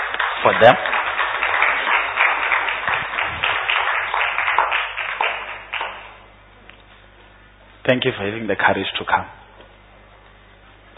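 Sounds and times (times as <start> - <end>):
audience clapping hands: 0.0 - 6.3
speech: 0.4 - 0.9, 7.9 - 9.4.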